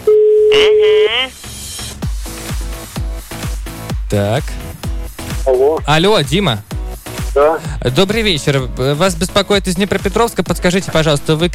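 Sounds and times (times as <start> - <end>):
telephone ringback tone: 0.0 - 1.1
speech: 4.1 - 4.6, 5.5 - 6.7, 7.4 - 11.5.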